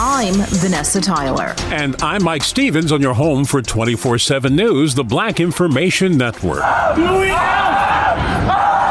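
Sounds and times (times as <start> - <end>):
speech: 0.2 - 8.6
teen screaming while police dog bites leg: 6.6 - 8.8.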